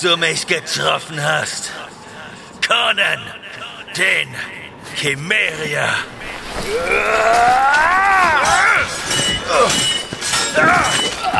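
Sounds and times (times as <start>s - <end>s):
speech: 0.0s - 2.0s, 2.7s - 9.9s, 10.6s - 11.3s
steel blades clashing in battle over icy land: 7.0s - 11.3s.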